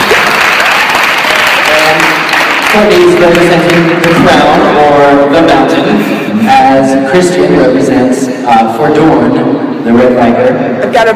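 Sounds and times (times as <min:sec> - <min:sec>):
audience applause: 0:00.0 - 0:04.3
speech: 0:02.8 - 0:11.1.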